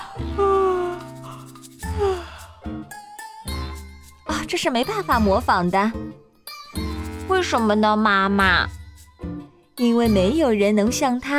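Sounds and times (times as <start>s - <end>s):
voice imitating a big yawn: 0.0s - 2.7s
speech: 4.5s - 6.8s, 7.4s - 8.8s, 9.8s - 11.3s.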